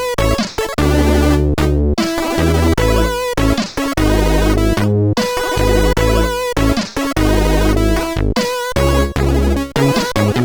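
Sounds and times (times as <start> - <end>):
SID CSG8580R5 chip synthesizer sound: 0.0 - 10.4.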